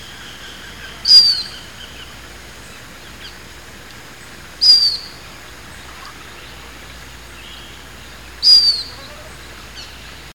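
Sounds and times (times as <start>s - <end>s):
steady faint hiss: 0.0s - 10.3s
high falling bird chirps: 0.1s - 2.1s, 4.6s - 5.2s, 5.8s - 10.0s.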